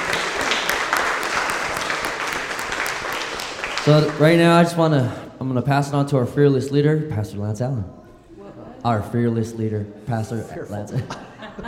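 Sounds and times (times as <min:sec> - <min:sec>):
audience applause: 0:00.0 - 0:04.8
speech: 0:03.9 - 0:08.0, 0:08.8 - 0:11.6
laughter: 0:10.4 - 0:11.6.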